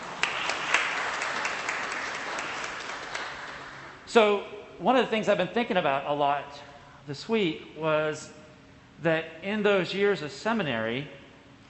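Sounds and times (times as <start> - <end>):
audience applause: 0.0 - 4.0
speech: 4.1 - 8.4, 9.0 - 11.2.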